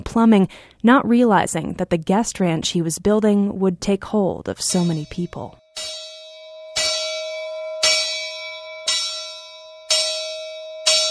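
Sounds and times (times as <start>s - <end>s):
speech: 0.0s - 6.0s
bell ringing to announce breakfast: 4.7s - 11.0s.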